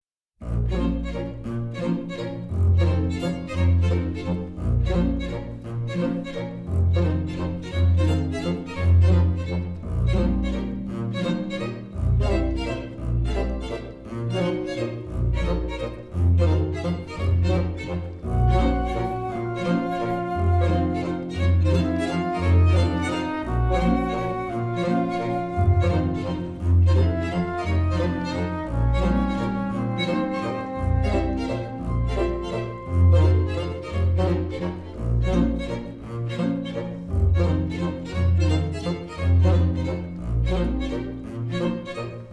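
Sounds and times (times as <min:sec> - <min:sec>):
strange waltz music: 0:00.4 - 0:42.3.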